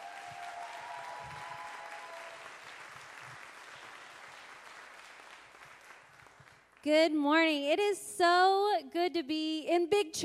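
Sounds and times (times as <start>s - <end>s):
crowd clapping: 0.0s - 6.9s
speech: 6.8s - 10.2s.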